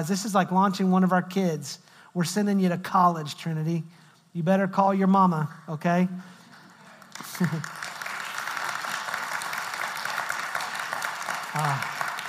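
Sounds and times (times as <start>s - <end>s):
speech: 0.0s - 6.3s, 7.2s - 7.8s, 11.6s - 11.9s
audience clapping: 6.3s - 12.2s.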